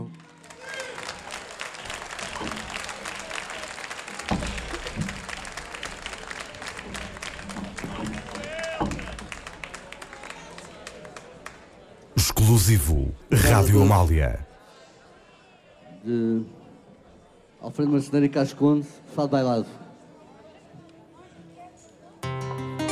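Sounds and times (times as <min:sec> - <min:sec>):
audience applause: 0:00.0 - 0:11.6
speech: 0:12.5 - 0:14.5, 0:16.0 - 0:16.6, 0:17.6 - 0:19.8.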